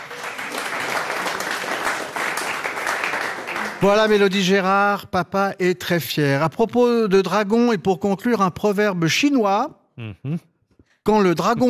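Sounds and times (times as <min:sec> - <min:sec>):
audience applause: 0:00.0 - 0:04.5
speech: 0:03.8 - 0:10.5, 0:11.1 - 0:11.6.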